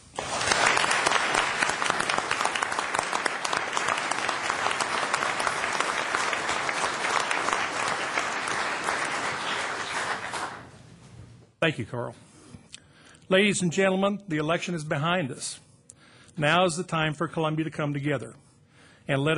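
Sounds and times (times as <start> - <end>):
audience applause: 0.0 - 10.7
speech: 11.7 - 12.3, 13.3 - 15.6, 16.4 - 18.4, 19.1 - 19.3.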